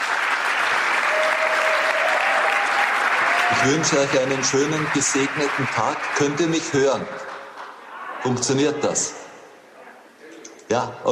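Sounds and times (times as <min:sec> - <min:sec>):
audience applause: 0:00.0 - 0:08.6
speech: 0:03.6 - 0:07.3, 0:08.2 - 0:09.2, 0:10.7 - 0:11.1.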